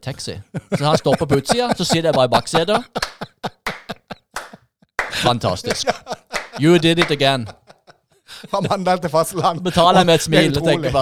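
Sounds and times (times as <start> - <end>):
speech: 0.0 - 3.3, 5.2 - 7.6, 8.4 - 10.9
laughter: 0.4 - 10.9
hands clapping: 1.3 - 7.6.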